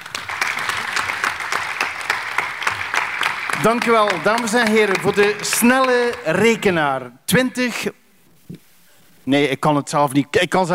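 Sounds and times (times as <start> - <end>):
audience applause: 0.0 - 6.7
speech: 3.6 - 8.6, 9.3 - 10.7.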